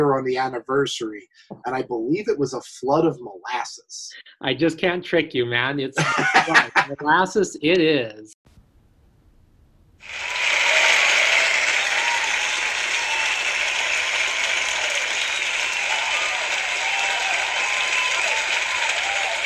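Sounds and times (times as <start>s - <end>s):
speech: 0.0s - 8.6s
laughter: 5.8s - 7.5s
applause sound effect: 10.0s - 19.4s.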